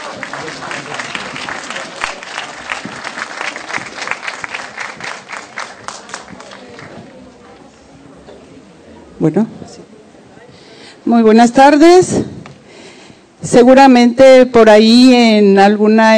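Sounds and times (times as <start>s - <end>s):
audience applause: 0.0s - 7.2s
speech: 0.3s - 1.2s, 9.2s - 9.6s, 11.1s - 12.2s, 13.4s - 16.1s.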